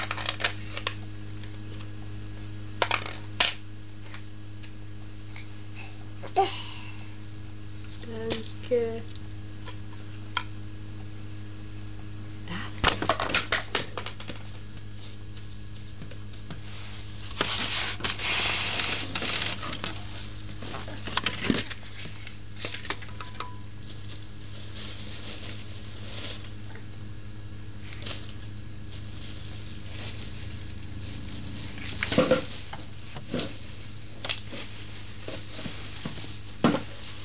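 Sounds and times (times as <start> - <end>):
steady low hum: 0.0 - 37.2
wastepaper basket being handled, rustling, scraping and knocking: 13.1 - 26.8, 27.8 - 37.2.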